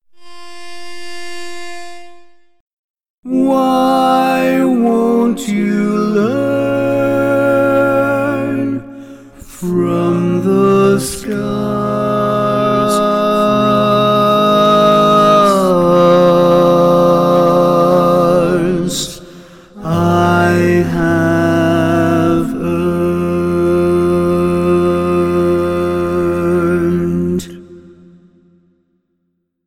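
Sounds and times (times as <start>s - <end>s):
barbershop tags lead voice: 3.2s - 28.3s.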